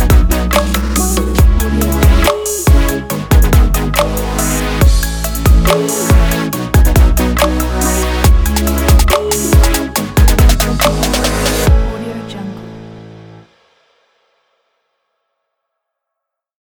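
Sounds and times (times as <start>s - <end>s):
future bass music: 0.0s - 12.2s.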